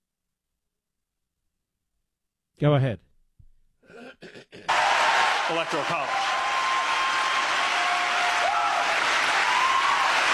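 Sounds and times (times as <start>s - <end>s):
speech: 2.6s - 3.0s, 5.5s - 6.3s
audience clapping: 4.7s - 10.3s.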